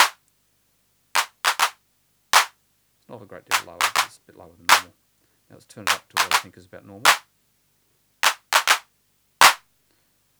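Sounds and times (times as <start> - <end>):
synthesized hand claps with the noise turned down: 0.0 - 0.2, 1.2 - 1.8, 3.5 - 4.9, 5.9 - 7.2, 8.2 - 8.8
speech: 3.1 - 7.3.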